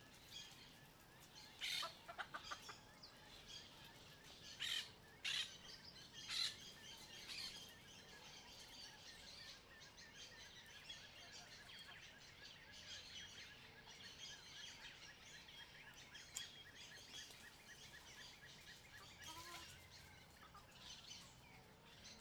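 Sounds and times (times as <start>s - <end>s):
chickens walking on grass at a country smallholding in the morning: 0.0s - 5.2s, 15.6s - 22.2s
birds at a country smallholding in the morning: 0.0s - 22.2s
macaws at a country smallholding: 1.6s - 2.8s, 19.0s - 21.3s.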